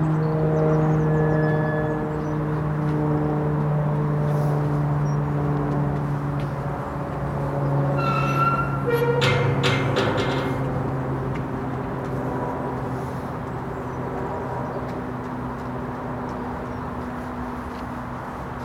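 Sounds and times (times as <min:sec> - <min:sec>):
wind: 0:00.0 - 0:18.6.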